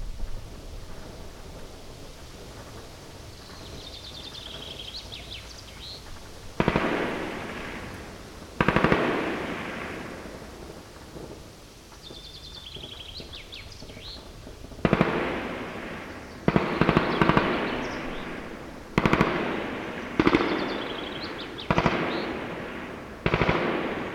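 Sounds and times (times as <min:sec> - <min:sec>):
gunfire: 0:06.6 - 0:10.5, 0:14.7 - 0:24.1.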